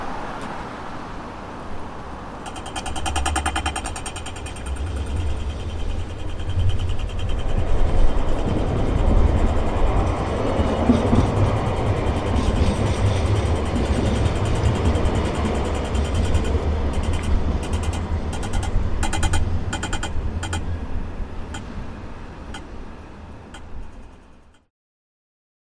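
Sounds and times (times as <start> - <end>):
ticking: 2.4 - 20.8, 23.5 - 24.6
tram siren: 2.4 - 24.5.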